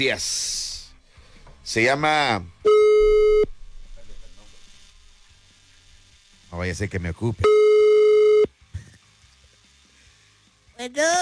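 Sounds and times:
speech: 0.0 - 0.6, 1.7 - 2.8, 6.6 - 7.6, 10.8 - 11.2
telephone line tone while dialing a radio show caller: 2.7 - 3.5, 7.4 - 8.5.

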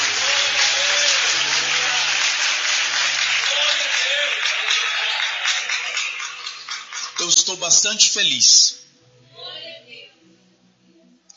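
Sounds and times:
audience applauding: 0.0 - 7.6
speech: 7.4 - 8.8.

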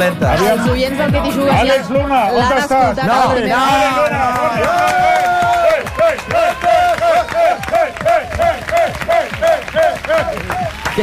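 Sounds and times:
speech: 0.0 - 5.2
studio audience applause: 3.5 - 11.0
people whooping and shouting: 3.7 - 11.0.

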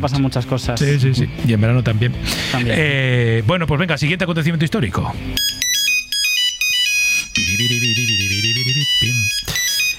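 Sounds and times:
speech: 0.0 - 5.6, 7.6 - 9.4
Nokia 3310 mobile phone ringtone: 0.8 - 1.0, 5.4 - 9.9.

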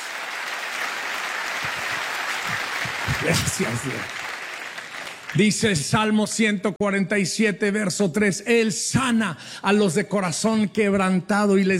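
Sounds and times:
audience applause: 0.0 - 5.8
speech: 3.2 - 4.2, 5.4 - 11.7.

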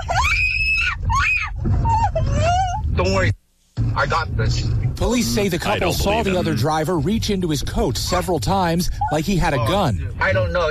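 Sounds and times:
woman screaming from a car's passenger seat during road rage: 0.0 - 2.8
low rumble of the moving car: 0.0 - 10.6
speech: 3.0 - 3.4, 4.0 - 10.6.

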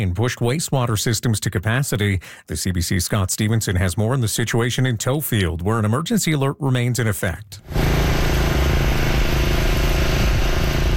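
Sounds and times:
speech: 0.0 - 8.2
water pumps running at full power: 7.7 - 10.9.

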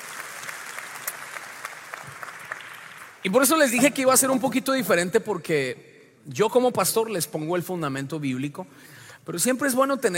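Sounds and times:
audience applause: 0.0 - 3.3
speech: 3.2 - 10.1.

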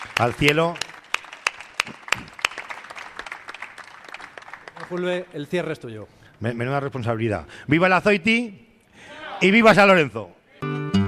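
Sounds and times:
audience applause: 0.0 - 5.3
speech: 0.2 - 0.8, 4.9 - 10.4.

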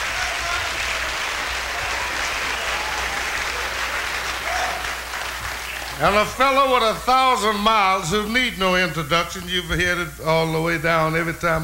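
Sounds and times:
audience applause: 0.0 - 7.6
speech: 6.0 - 11.6.

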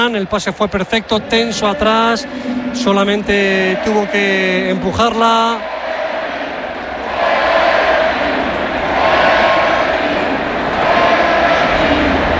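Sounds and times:
speech: 0.0 - 5.8
stadium crowd ovation: 0.0 - 12.3.

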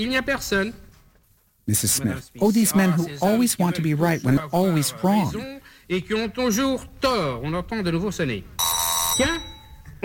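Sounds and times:
speech: 0.0 - 0.8, 1.7 - 8.6, 9.2 - 10.0
doorbell ringing: 8.6 - 9.9.

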